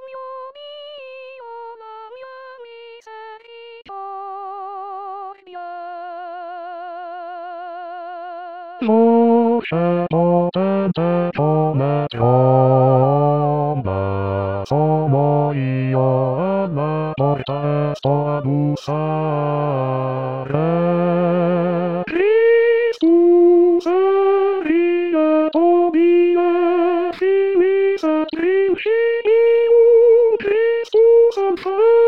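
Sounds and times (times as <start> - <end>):
bass voices singing a hymn: 8.8 - 32.0.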